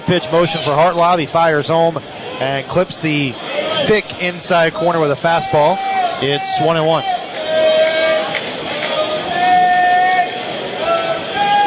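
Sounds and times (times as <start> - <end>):
vocal baseball stadium crowd: 0.0 - 11.6
speech: 0.1 - 7.2.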